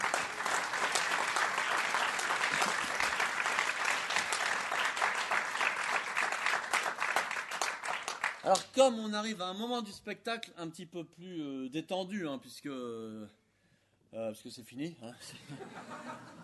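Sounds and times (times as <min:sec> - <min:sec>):
audience applauding: 0:00.0 - 0:08.7
speech: 0:08.5 - 0:13.4, 0:14.1 - 0:16.4
laughter: 0:15.2 - 0:16.4.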